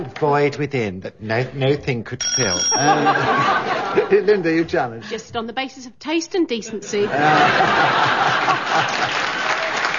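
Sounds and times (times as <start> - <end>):
speech: 0.0 - 9.3
laughter: 2.7 - 5.1, 6.7 - 9.9
audience clapping: 7.5 - 9.9.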